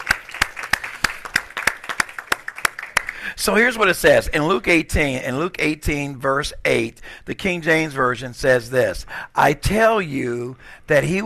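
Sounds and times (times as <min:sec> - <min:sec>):
audience clapping hands: 0:00.0 - 0:03.4
speech: 0:03.4 - 0:11.2.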